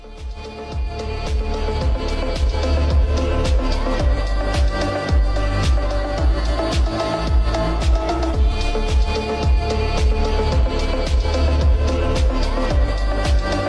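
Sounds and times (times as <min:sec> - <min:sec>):
remix reverb bass: 0:00.0 - 0:13.6.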